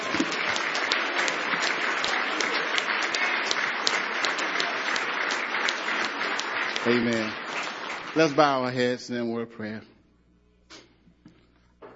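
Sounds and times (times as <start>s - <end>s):
audience hand clapping: 0.0s - 9.0s
speech: 6.8s - 7.4s, 8.2s - 10.0s.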